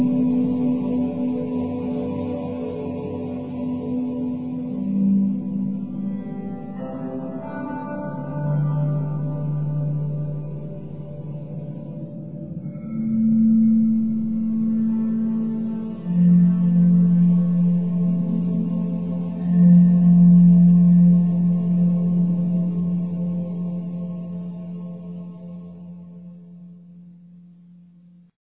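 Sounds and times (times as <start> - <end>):
drone: 0.0 - 27.5.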